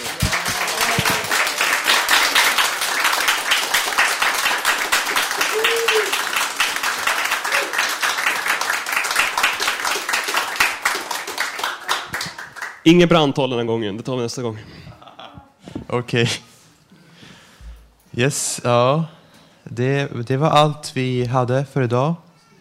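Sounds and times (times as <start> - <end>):
sustained crowd applause: 0.0 - 12.8
person whooping: 5.3 - 6.4, 7.3 - 7.9
speech: 12.9 - 14.8, 15.9 - 16.4, 18.2 - 22.2.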